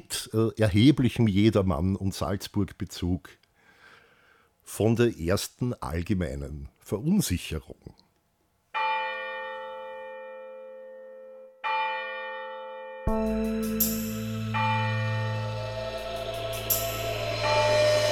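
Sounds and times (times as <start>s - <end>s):
speech: 0.1s - 3.4s, 4.7s - 8.0s
deep church bell tolling death knell: 8.8s - 18.0s
heavy low rumble: 13.1s - 18.0s.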